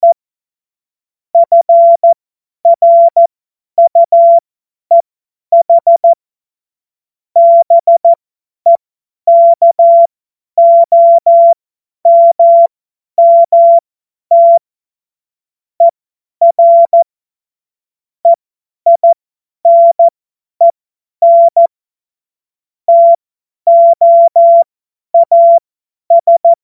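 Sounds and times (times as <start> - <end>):
CW Morse code beeps: 1.4 - 5.0, 5.6 - 6.2, 7.4 - 14.6, 15.8 - 17.0, 18.2 - 21.7, 22.9 - 26.6.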